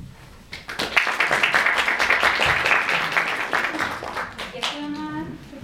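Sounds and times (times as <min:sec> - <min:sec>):
audience applause: 0:00.5 - 0:05.1.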